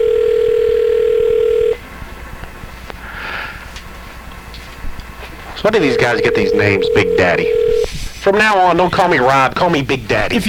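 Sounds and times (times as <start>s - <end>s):
telephone ringing tone on a call: 0.0s - 1.8s, 5.6s - 7.9s
speech: 5.6s - 10.4s.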